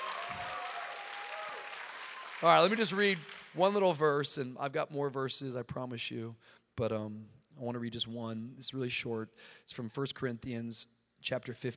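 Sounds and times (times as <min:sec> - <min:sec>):
audience clapping: 0:00.0 - 0:03.9
speech: 0:02.4 - 0:11.7.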